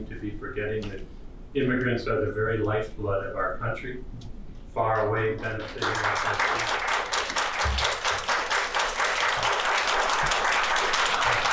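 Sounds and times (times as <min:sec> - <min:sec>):
speech: 0:00.0 - 0:06.9
applause after naturalization ceremony speech: 0:05.6 - 0:11.5.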